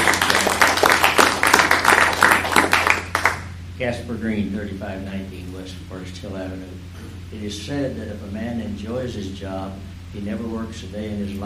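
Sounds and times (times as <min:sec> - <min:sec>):
round of applause: 0:00.0 - 0:03.5
speech: 0:03.8 - 0:11.4.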